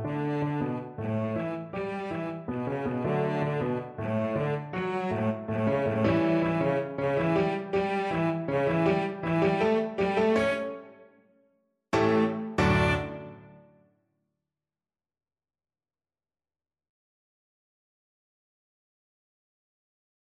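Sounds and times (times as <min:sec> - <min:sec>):
cello: 0:00.0 - 0:10.9, 0:12.0 - 0:13.5
salsa music: 0:12.0 - 0:13.4.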